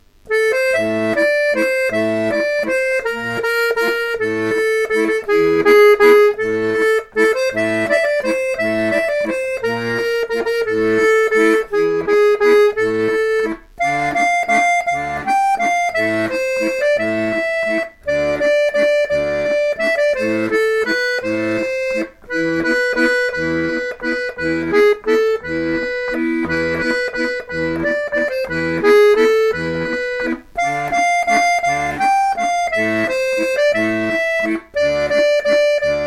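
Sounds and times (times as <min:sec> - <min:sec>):
waltz music: 0:00.3 - 0:36.0.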